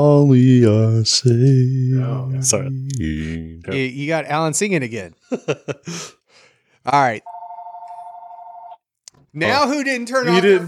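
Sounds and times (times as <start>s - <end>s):
speech: 0.0s - 6.2s, 6.8s - 7.3s, 9.3s - 10.6s
laughter: 5.2s - 6.1s
landline telephone ringing: 7.3s - 8.8s.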